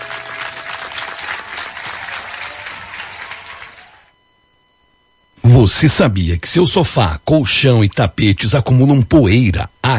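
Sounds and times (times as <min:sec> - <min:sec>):
applause: 0:00.0 - 0:04.1
speech: 0:05.4 - 0:09.9.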